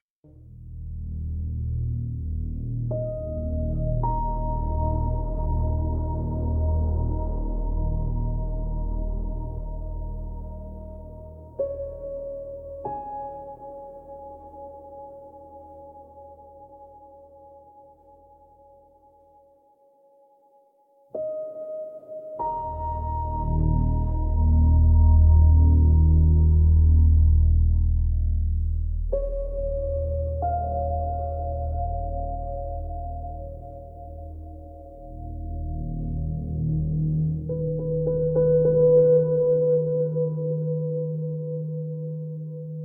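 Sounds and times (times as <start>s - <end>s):
quiet restless psychological dark ambient music: 0.3s - 42.8s.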